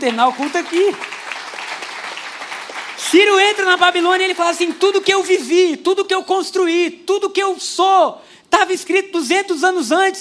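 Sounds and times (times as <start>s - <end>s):
speech: 0.0s - 1.2s, 3.0s - 10.1s
audience applauding: 0.0s - 5.6s.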